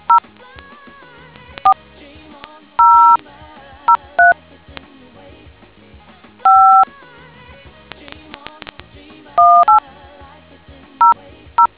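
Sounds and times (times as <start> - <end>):
DTMF tones: 2.8 - 3.2, 3.9 - 4.4, 6.5 - 6.8, 9.4 - 9.8.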